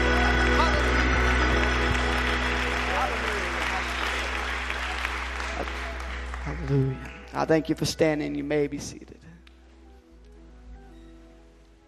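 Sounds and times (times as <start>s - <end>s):
audience clapping hands: 0.0s - 8.3s
speech: 6.7s - 9.2s.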